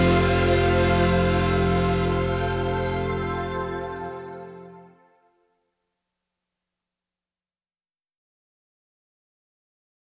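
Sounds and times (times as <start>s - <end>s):
instrumental music: 0.0s - 5.1s.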